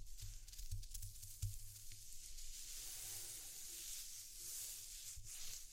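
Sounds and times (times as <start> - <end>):
scratching and rustling: 0.1 - 5.6
airy hiss: 2.1 - 5.6.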